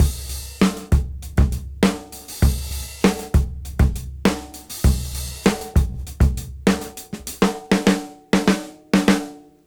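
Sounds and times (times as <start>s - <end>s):
music beat: 0.0s - 7.4s.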